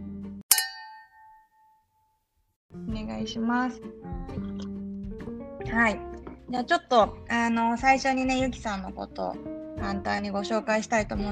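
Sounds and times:
glasses clinking in a toast: 0.5s - 1.8s
speech: 3.1s - 4.7s, 5.6s - 11.3s.

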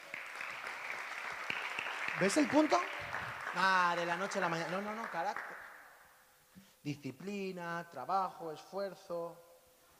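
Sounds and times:
audience applause: 0.0s - 5.8s
speech: 2.2s - 5.6s, 6.8s - 9.4s.

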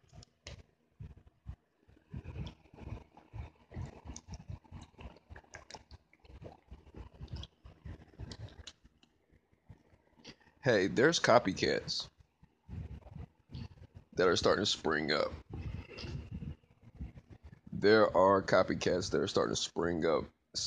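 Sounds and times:
person drinking water: 2.0s - 8.8s, 12.7s - 13.8s, 15.4s - 18.1s
speech: 10.6s - 12.1s, 14.2s - 15.4s, 17.8s - 20.6s.

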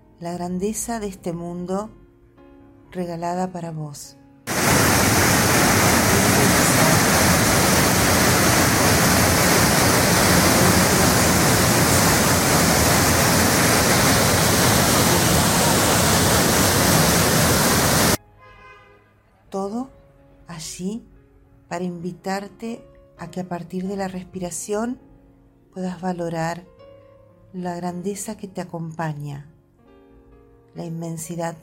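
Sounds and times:
speech: 0.2s - 2.0s, 2.9s - 4.2s, 20.9s - 25.1s, 25.8s - 26.7s, 27.5s - 29.5s, 30.8s - 31.6s
waterfall: 4.5s - 18.2s.

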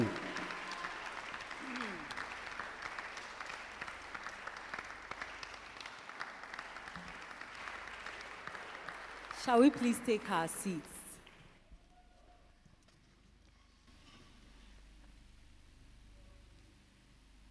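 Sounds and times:
faint audience applause welcoming a woman on stage: 0.0s - 11.6s
speech: 9.5s - 10.9s.

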